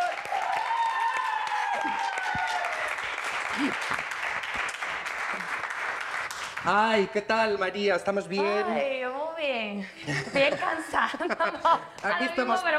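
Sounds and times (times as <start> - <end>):
audience applause: 0.0 - 6.9
speech: 3.6 - 4.0, 6.6 - 12.7
laughter: 9.8 - 12.0.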